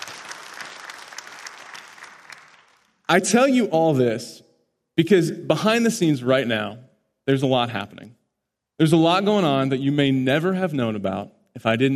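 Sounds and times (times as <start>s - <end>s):
audience applause: 0.0s - 3.0s
speech: 3.1s - 4.4s, 5.0s - 8.2s, 8.8s - 11.9s.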